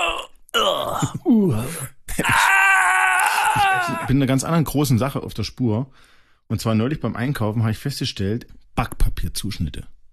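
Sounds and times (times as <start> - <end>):
voice imitating strangled screams of old computer games: 0.0 - 4.2
speech: 0.6 - 2.4, 4.1 - 10.0.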